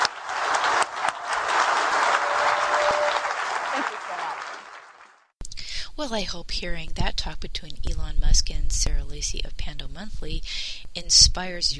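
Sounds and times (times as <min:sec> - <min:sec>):
audience applause at the end of a live onstage interview: 0:00.0 - 0:05.3
speech: 0:06.0 - 0:11.7.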